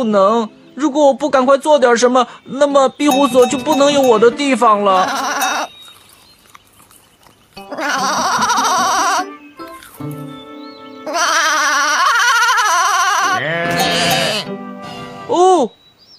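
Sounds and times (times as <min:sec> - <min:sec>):
speech: 0:00.0 - 0:05.3
goat bleating: 0:03.3 - 0:06.0, 0:07.4 - 0:10.1, 0:11.0 - 0:14.6.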